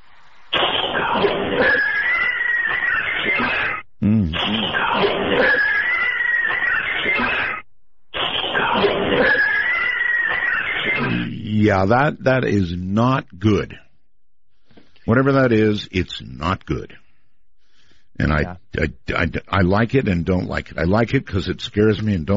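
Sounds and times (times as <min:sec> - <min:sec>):
eerie cat-like yowling: 0:00.9 - 0:03.8, 0:04.5 - 0:07.6, 0:08.3 - 0:11.3
speech: 0:11.7 - 0:13.8, 0:15.1 - 0:17.0, 0:18.2 - 0:22.3.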